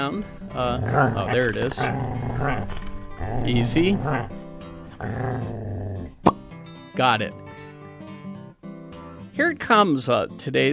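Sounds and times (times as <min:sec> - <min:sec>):
speech: 0:00.0 - 0:05.8, 0:07.0 - 0:07.4, 0:09.4 - 0:10.7
dog growling: 0:00.3 - 0:06.3.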